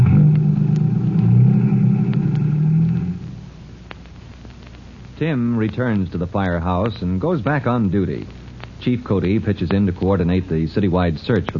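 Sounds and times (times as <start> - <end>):
car engine revving and driving off: 0.0 - 3.5
speech: 5.2 - 11.5.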